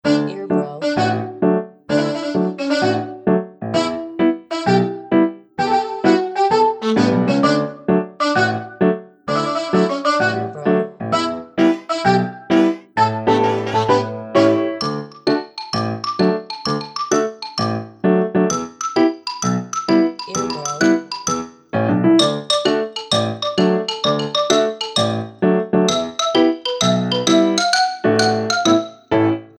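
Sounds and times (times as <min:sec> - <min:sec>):
song: 0:00.0 - 0:29.5.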